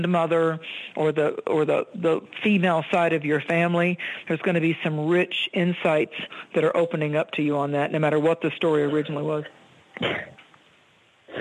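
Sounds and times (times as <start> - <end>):
speech: 0.0 - 10.4
sneezing: 10.0 - 10.4.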